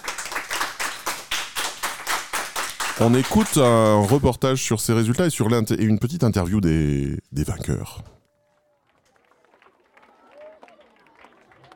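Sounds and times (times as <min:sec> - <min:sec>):
small group clapping: 0:00.0 - 0:04.5, 0:08.8 - 0:11.7
speech: 0:03.0 - 0:08.2.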